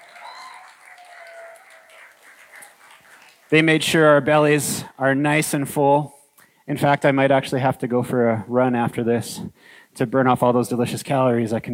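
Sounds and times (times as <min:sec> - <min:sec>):
faint whoops or whistles: 0:00.0 - 0:01.9
audience applause: 0:00.0 - 0:03.9
speech: 0:03.5 - 0:11.7.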